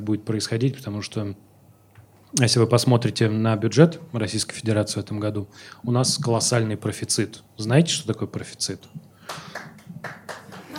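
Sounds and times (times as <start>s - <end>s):
speech: 0.0s - 1.5s, 2.3s - 10.2s
scattered audience applause: 9.2s - 10.7s.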